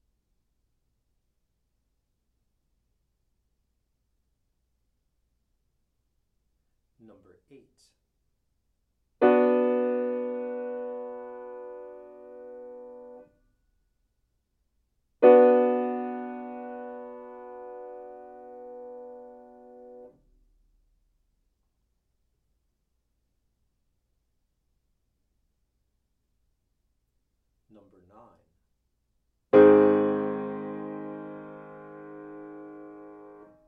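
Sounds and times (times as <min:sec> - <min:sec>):
chords: 0:09.2 - 0:13.2, 0:15.2 - 0:20.1, 0:29.5 - 0:33.6.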